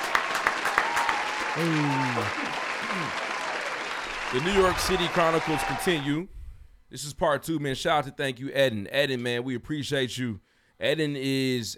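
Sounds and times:
applause: 0:00.0 - 0:06.1
speech: 0:01.6 - 0:03.3, 0:04.3 - 0:11.7.

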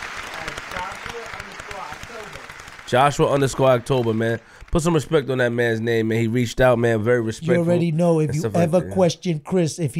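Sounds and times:
round of applause: 0:00.0 - 0:05.3
speech: 0:02.1 - 0:09.9.

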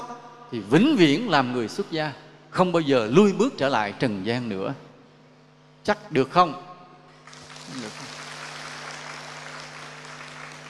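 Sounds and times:
speech: 0:00.5 - 0:04.8, 0:05.8 - 0:06.7, 0:07.7 - 0:08.2
audience applause at a Buddhist dharma talk: 0:07.2 - 0:10.6.

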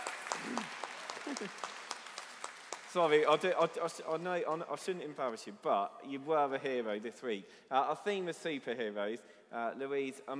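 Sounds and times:
round of applause from a group: 0:00.0 - 0:03.8
speech: 0:01.3 - 0:01.8, 0:02.9 - 0:10.3.

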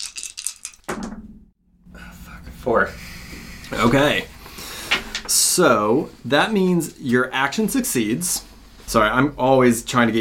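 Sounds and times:
two dice rolling: 0:00.0 - 0:00.9
speech: 0:02.6 - 0:03.1, 0:03.7 - 0:04.4, 0:05.3 - 0:10.2.

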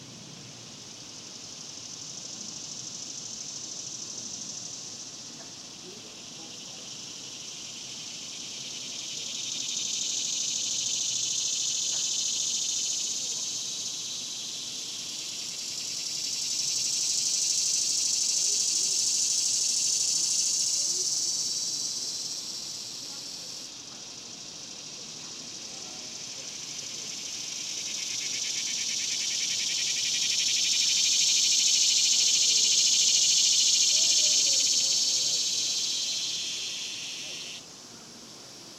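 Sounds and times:
cicadas buzzing: 0:00.0 - 0:38.7.

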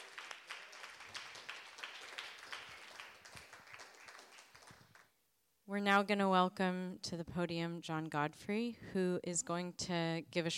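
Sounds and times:
audience applause: 0:00.0 - 0:05.1
speech: 0:05.7 - 0:10.5.

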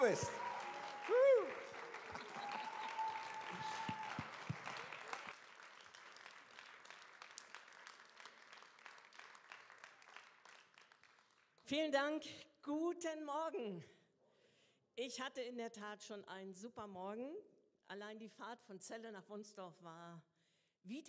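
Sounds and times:
speech: 0:00.0 - 0:00.5, 0:01.1 - 0:01.6, 0:11.7 - 0:14.0, 0:15.0 - 0:21.0
audience applause: 0:00.0 - 0:11.5.

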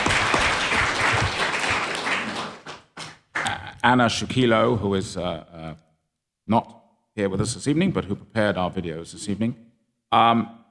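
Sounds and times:
audience applause at an evening art review panel: 0:00.0 - 0:03.5
speech: 0:03.8 - 0:05.8, 0:06.5 - 0:10.6.

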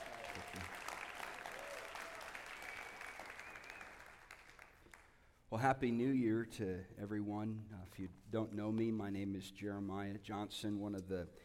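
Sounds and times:
crowd applause: 0:00.0 - 0:05.1
speech: 0:05.5 - 0:11.4.

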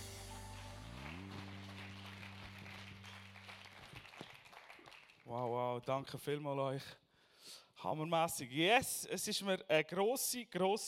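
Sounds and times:
applause: 0:00.0 - 0:05.6
speech: 0:05.3 - 0:07.0, 0:07.8 - 0:10.8.

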